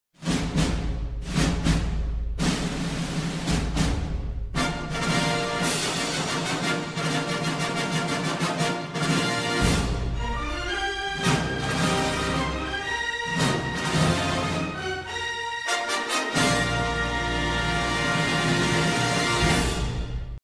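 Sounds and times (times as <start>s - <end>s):
film-style welcome intro music: 0.2s - 20.4s.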